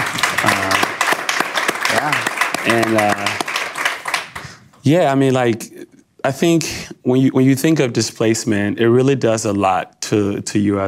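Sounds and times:
people clapping: 0:00.0 - 0:04.8
speech: 0:02.0 - 0:03.5, 0:04.8 - 0:10.8.

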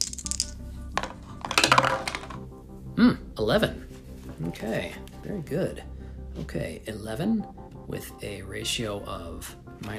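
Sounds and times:
dice rattling and tumbling across a hard surface: 0:00.0 - 0:02.4
speech: 0:03.0 - 0:09.9.

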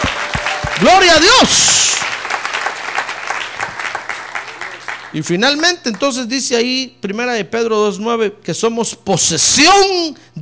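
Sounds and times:
audience applauding: 0:00.0 - 0:06.2
speech: 0:00.8 - 0:02.2, 0:05.1 - 0:10.4.

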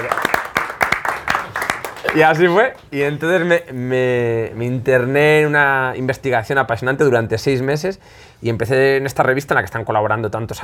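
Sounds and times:
audience applause: 0:00.0 - 0:02.6
speech: 0:02.1 - 0:10.6.

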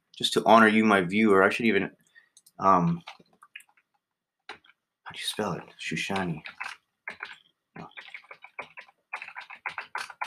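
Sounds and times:
speech: 0:00.2 - 0:02.0, 0:02.6 - 0:03.2, 0:05.1 - 0:08.0
typing on a computer keyboard: 0:06.1 - 0:10.2.

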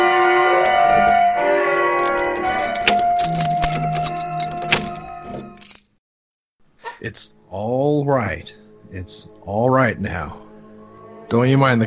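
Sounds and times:
door being locked and bolt thrown: 0:00.0 - 0:05.9
speech: 0:07.1 - 0:10.5, 0:11.3 - 0:11.8.

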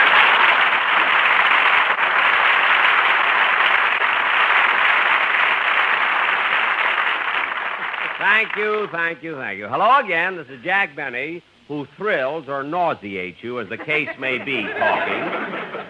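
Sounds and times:
studio audience applause: 0:00.0 - 0:09.2
speech: 0:08.4 - 0:15.8
laughter: 0:13.6 - 0:15.8.

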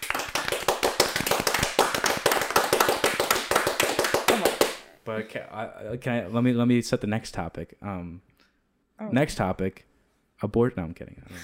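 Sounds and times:
applause sound effect: 0:00.0 - 0:04.8
speech: 0:05.1 - 0:08.3, 0:09.0 - 0:11.4.

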